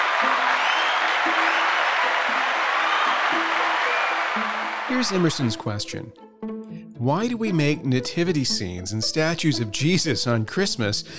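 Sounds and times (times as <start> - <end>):
applause for a question asker: 0.0 - 5.6
speech: 4.9 - 11.1.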